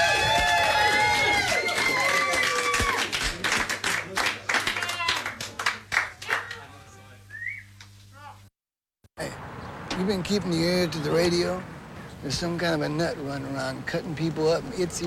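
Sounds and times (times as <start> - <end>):
studio audience applause: 0.0 - 6.7
studio audience cheering: 0.0 - 7.0
shrill whistles: 7.3 - 7.8
speech: 10.0 - 15.0.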